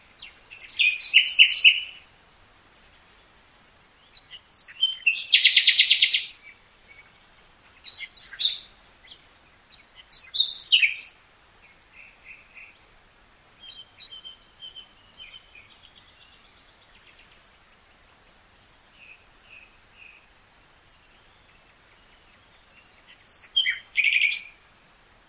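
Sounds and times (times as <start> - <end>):
Common nightingale Luscinia megarhynchos singing: 0.0 - 2.1, 2.7 - 18.2, 18.8 - 24.8.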